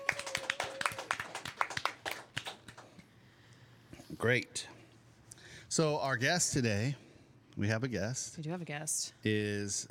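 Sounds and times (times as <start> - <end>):
hand clapping: 0.0 - 3.1
speech: 4.2 - 4.7, 5.7 - 7.0, 7.6 - 9.9.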